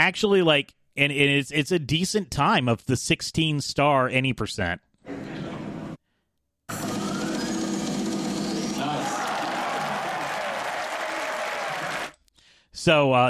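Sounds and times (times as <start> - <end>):
speech: 0.0 - 5.4, 12.8 - 13.2
live crowd cheering and applauding: 6.7 - 12.2.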